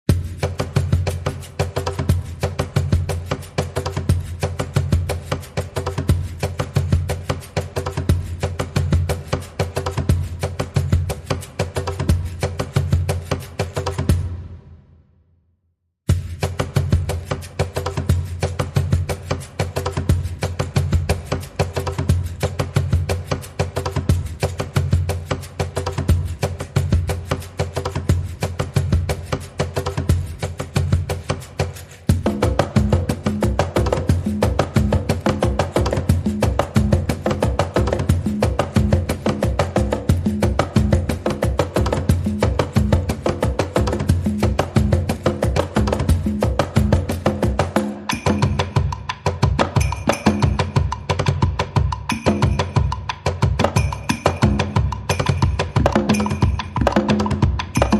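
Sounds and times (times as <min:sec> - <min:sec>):
percussion: 0:00.0 - 0:15.2, 0:16.0 - 0:57.9.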